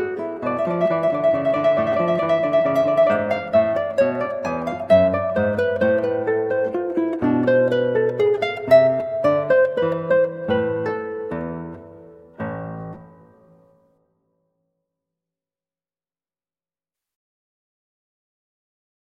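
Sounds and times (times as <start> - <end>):
guitar minuet: 0.0 - 13.8.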